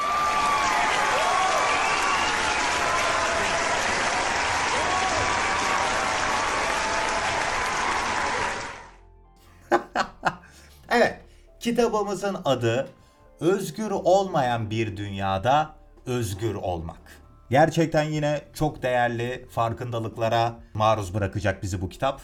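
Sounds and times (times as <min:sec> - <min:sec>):
large crowd applauding: 0:00.0 - 0:09.0
laughter: 0:09.6 - 0:10.5
speech: 0:11.6 - 0:22.2.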